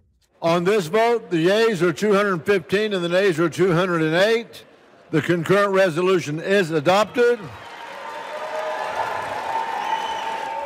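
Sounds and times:
speech: 0.4s - 7.6s
cheering after a vote: 6.8s - 10.6s
applause after a vote: 7.4s - 10.6s.

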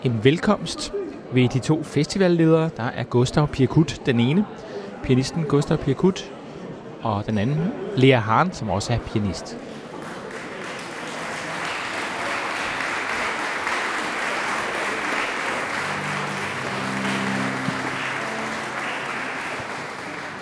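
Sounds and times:
speech: 0.0s - 6.4s, 7.0s - 9.7s
audience applause: 9.8s - 20.4s.

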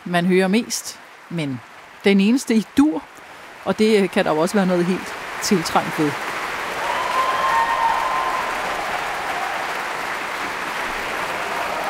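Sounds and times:
speech: 0.0s - 6.3s
concert audience applause in the Berlin Philharmonie: 4.5s - 11.8s.

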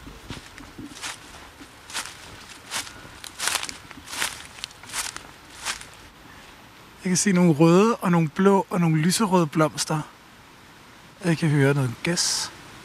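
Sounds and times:
footsteps walking into a thicket: 0.0s - 6.3s
speech: 7.0s - 10.2s, 11.2s - 12.6s.

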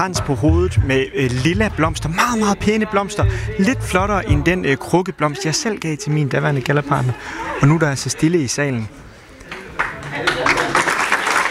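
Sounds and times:
speech: 0.0s - 9.0s
audience clapping in a hall at a school gala: 9.5s - 11.4s.

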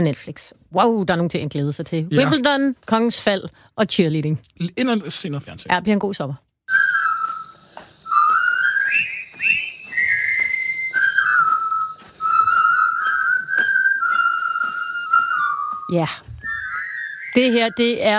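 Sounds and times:
speech: 0.0s - 6.5s, 15.9s - 16.3s, 17.3s - 18.1s
person whistling a march from an old war film: 6.7s - 18.1s.

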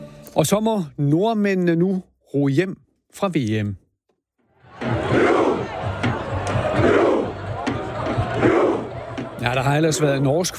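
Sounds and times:
speech: 0.4s - 3.8s, 9.4s - 10.5s
football fans chanting rowing battle cry: 4.6s - 10.2s.

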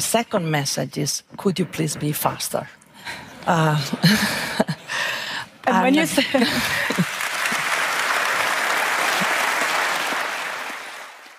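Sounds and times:
speech: 0.0s - 4.7s, 5.7s - 7.0s
audience applause: 6.5s - 11.3s.

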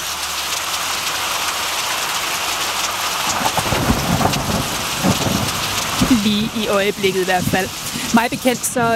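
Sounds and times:
rain: 0.0s - 8.9s
thunder: 3.2s - 7.8s
speech: 6.2s - 8.9s.

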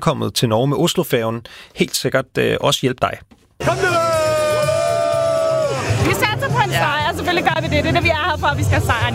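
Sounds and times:
speech: 0.0s - 4.2s, 6.0s - 9.1s
Danish football fans cheering and chanting: 3.6s - 7.2s.

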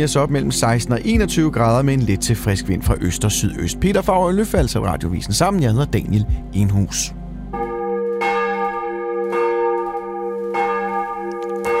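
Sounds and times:
speech: 0.0s - 7.2s
church bells of Vor Frue Kirke in København ringing for morning service: 7.5s - 11.7s.

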